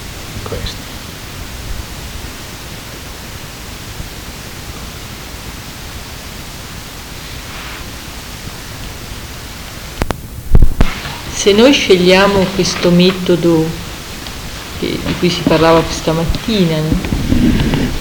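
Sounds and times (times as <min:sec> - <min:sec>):
wind blowing: 0:00.0 - 0:17.9
speech: 0:00.5 - 0:00.9, 0:11.4 - 0:13.8, 0:14.8 - 0:17.8.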